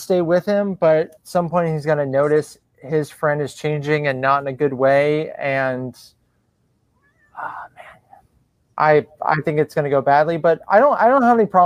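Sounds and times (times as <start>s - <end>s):
speech: 0.0s - 6.2s, 7.4s - 8.0s, 8.8s - 11.6s
cat meowing: 6.9s - 8.0s.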